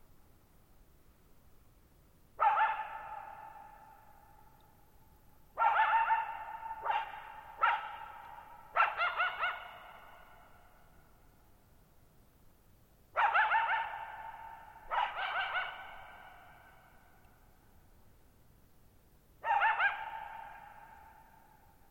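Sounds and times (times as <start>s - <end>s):
coyote barking and yipping: 2.4s - 3.9s, 5.6s - 10.2s, 13.2s - 16.7s, 19.4s - 21.3s.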